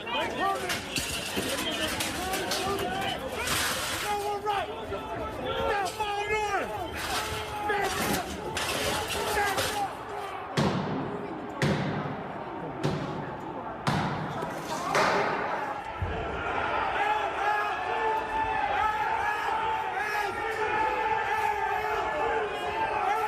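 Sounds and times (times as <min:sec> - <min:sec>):
Capitol doors breaking open: 0:00.0 - 0:04.6, 0:06.8 - 0:16.2
mob streaming into the Capitol: 0:00.0 - 0:23.2.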